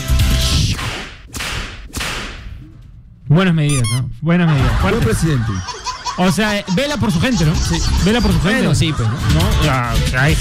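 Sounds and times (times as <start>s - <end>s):
whip crack sound effect: 0.7s - 2.6s
speech: 3.3s - 10.3s
laughter: 4.3s - 10.3s.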